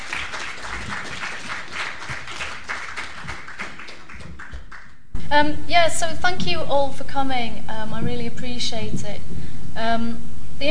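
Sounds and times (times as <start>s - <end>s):
audience applause: 0.0s - 5.1s
speech: 5.3s - 10.6s.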